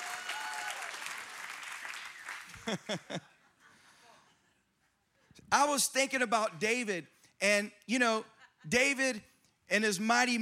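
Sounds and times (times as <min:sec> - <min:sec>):
audience clapping: 0:00.0 - 0:03.1
laughter: 0:02.5 - 0:04.6, 0:08.2 - 0:08.8
speech: 0:02.7 - 0:03.3, 0:05.5 - 0:10.4.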